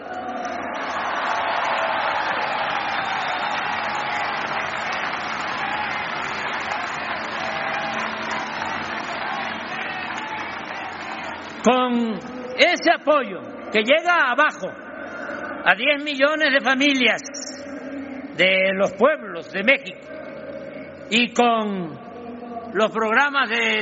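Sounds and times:
audience applause: 0:00.0 - 0:11.8
speech: 0:11.6 - 0:14.8, 0:15.6 - 0:17.4, 0:18.4 - 0:20.0, 0:21.1 - 0:22.0, 0:22.8 - 0:23.8.

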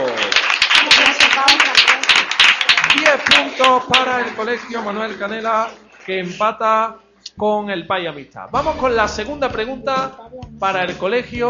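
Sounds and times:
applause: 0:00.0 - 0:06.2
speech: 0:03.2 - 0:11.4.

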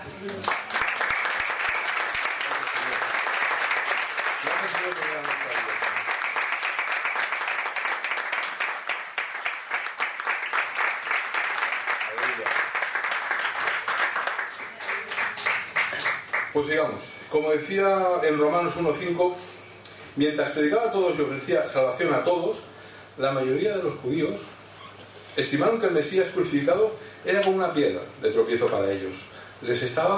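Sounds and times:
speech: 0:00.2 - 0:00.6, 0:16.6 - 0:19.5, 0:20.2 - 0:24.5, 0:25.4 - 0:30.1
crowd applauding: 0:00.2 - 0:16.6.

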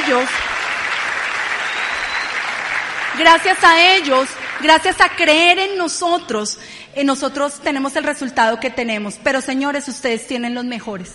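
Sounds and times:
sustained audience applause: 0:00.0 - 0:05.2
speech: 0:00.1 - 0:00.5, 0:03.2 - 0:11.1.

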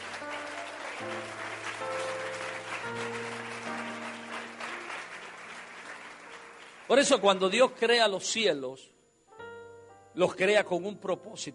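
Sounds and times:
keyboard or organ chords: 0:00.0 - 0:05.5, 0:09.2 - 0:11.5
audience applauding: 0:00.0 - 0:07.7
speech: 0:06.9 - 0:09.0, 0:10.2 - 0:11.5.

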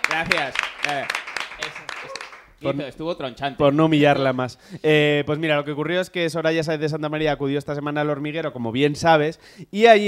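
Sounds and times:
clapping from a small group: 0:00.0 - 0:02.5
speech: 0:00.2 - 0:01.8, 0:02.6 - 0:10.0
people cheering and whooping: 0:02.0 - 0:02.4.

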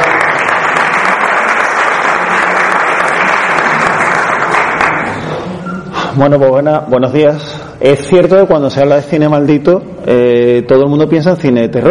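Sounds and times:
audience applause: 0:00.0 - 0:05.4
speech: 0:06.2 - 0:11.8.

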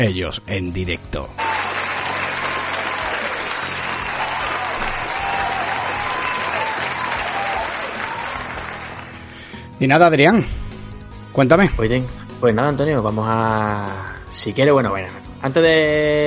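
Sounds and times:
speech: 0:00.0 - 0:01.6, 0:09.8 - 0:10.6, 0:11.4 - 0:16.2
sustained crowd applause: 0:01.4 - 0:09.4.

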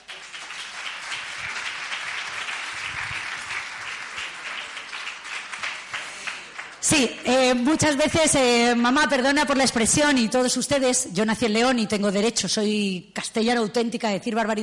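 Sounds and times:
audience applause: 0:00.0 - 0:06.8
speech: 0:06.9 - 0:14.6.

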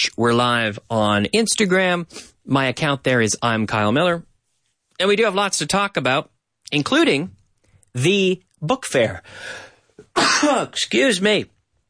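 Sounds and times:
speech: 0:00.0 - 0:04.3, 0:05.0 - 0:09.6, 0:10.2 - 0:11.5
sneeze: 0:10.2 - 0:10.8.

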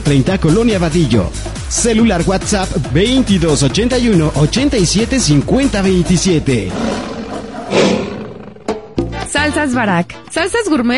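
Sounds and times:
speech: 0:00.1 - 0:07.1, 0:09.4 - 0:10.9
lion roaring: 0:06.5 - 0:09.0.

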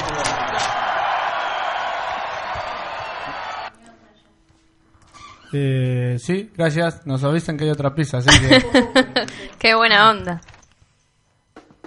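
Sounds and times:
live studio audience cheering: 0:00.0 - 0:03.7
speech: 0:05.5 - 0:10.5
laughter: 0:08.3 - 0:09.6.

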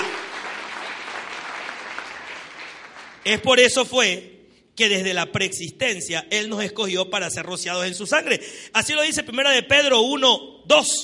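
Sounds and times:
audience applauding: 0:00.0 - 0:03.3
speech: 0:03.2 - 0:11.0.

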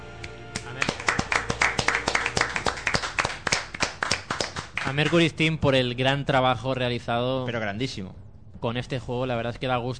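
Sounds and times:
hand clapping: 0:00.2 - 0:05.2
speech: 0:04.9 - 0:09.9.

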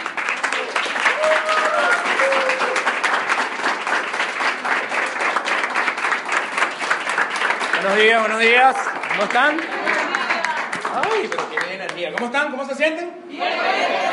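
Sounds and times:
loud sustained applause from a large audience: 0:00.0 - 0:12.3
faint whistles and cheers: 0:01.1 - 0:02.9
speech: 0:07.8 - 0:09.7, 0:11.0 - 0:14.1.

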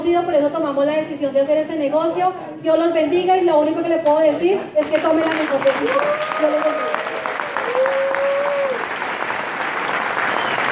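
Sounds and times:
speech: 0:00.1 - 0:07.1
audience applause: 0:04.8 - 0:10.6.

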